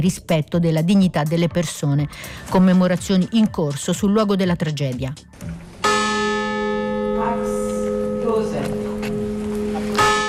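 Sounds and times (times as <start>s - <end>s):
speech: 0.0s - 5.6s
church bell tolling: 5.8s - 10.2s.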